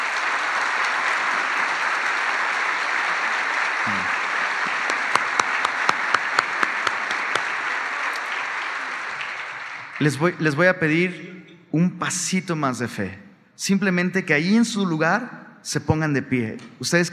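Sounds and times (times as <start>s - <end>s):
audience applause: 0.0s - 10.6s
speech: 10.0s - 17.1s.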